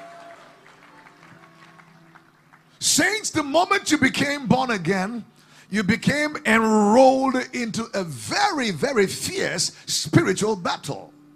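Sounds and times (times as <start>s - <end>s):
audience clapping hands: 0.0s - 2.8s
speech: 2.8s - 11.2s.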